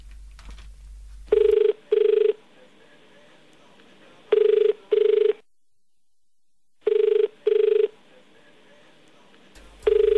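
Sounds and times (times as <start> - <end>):
phone ringback tone on an outgoing call: 1.3 - 2.4, 4.4 - 5.4, 6.9 - 7.9, 9.9 - 10.1.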